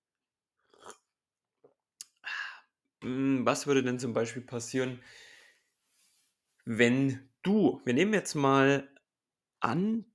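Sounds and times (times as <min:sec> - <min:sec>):
gulp: 0:00.6 - 0:01.1
someone sipping a drink with slurping and mouth noises: 0:00.6 - 0:02.2
speech: 0:03.0 - 0:05.2, 0:06.6 - 0:08.9, 0:09.6 - 0:10.1.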